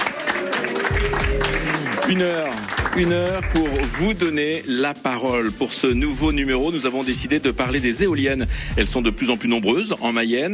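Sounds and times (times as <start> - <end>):
audience applauding and making noise: 0.0 - 4.4
speech: 2.1 - 10.5.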